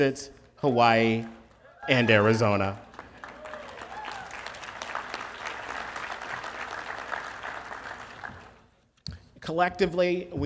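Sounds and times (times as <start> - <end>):
speech: 0.0 - 2.8, 9.5 - 10.4
audience cheering: 0.6 - 8.6.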